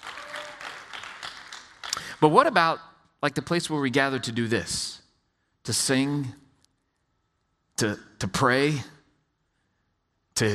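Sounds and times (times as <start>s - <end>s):
audience clapping: 0.0s - 2.2s
speech: 2.2s - 5.0s, 5.6s - 6.4s, 7.8s - 9.0s.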